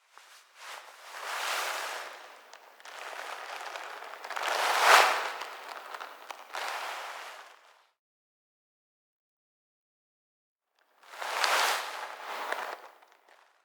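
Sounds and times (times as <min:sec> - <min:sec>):
cloth rustling foley: 0:00.1 - 0:07.7, 0:11.2 - 0:13.4.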